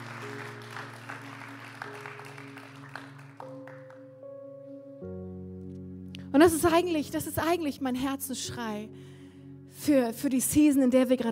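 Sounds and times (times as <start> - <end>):
audience applause: 0.0 - 4.1
speech: 6.4 - 9.1, 9.8 - 11.3.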